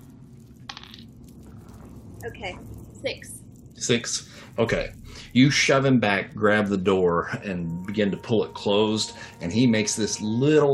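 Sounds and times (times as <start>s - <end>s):
low hum: 0.0s - 10.7s
dice rolled across a hard surface: 0.4s - 1.2s
speech: 2.2s - 10.7s.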